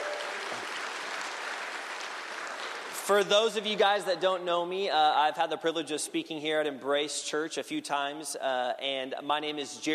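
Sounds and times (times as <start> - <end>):
round of applause: 0.0 - 3.2
speech: 3.1 - 9.9.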